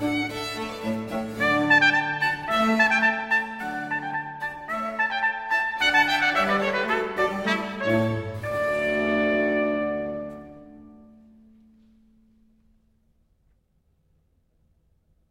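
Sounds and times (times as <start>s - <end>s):
violin concerto: 0.0s - 11.8s.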